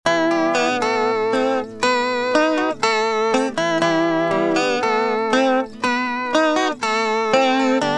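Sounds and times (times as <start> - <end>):
acoustic guitar: 0.1 - 7.9.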